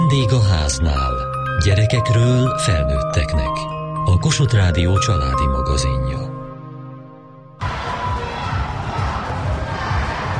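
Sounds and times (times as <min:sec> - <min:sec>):
speech: 0:00.1 - 0:06.3
basketball crowd cheering: 0:07.6 - 0:10.3.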